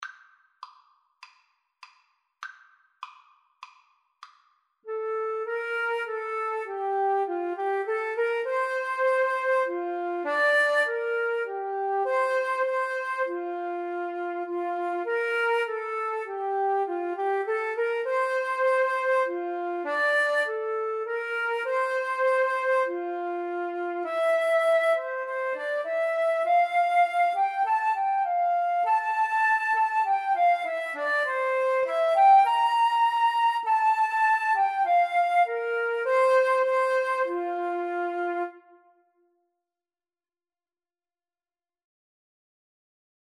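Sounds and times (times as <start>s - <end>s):
flute duet: 4.9s - 39.1s.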